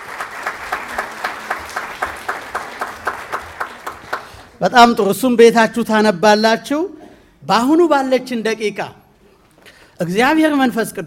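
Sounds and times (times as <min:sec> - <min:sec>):
audience applauding at a religious teaching gathering: 0:00.0 - 0:04.6
speech: 0:04.6 - 0:09.0, 0:10.0 - 0:11.0.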